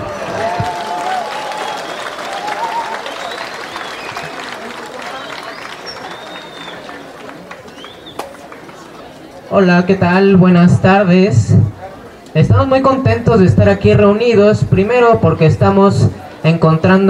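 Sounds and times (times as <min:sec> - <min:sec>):
audience applause: 0:00.0 - 0:09.1
speech: 0:09.6 - 0:11.7, 0:12.4 - 0:17.0.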